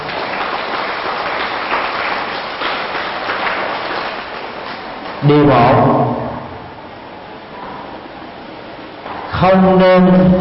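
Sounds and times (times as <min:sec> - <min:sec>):
loud round of applause: 0:00.0 - 0:05.4
speech: 0:05.2 - 0:06.2, 0:09.4 - 0:10.3.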